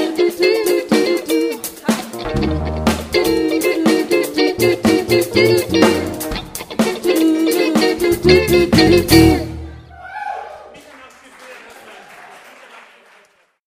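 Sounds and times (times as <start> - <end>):
vocals: 0.0 - 2.4, 3.0 - 9.8
drums: 0.0 - 9.8
guitar: 0.0 - 9.8
bass: 2.2 - 3.7, 4.4 - 6.6, 8.0 - 9.9.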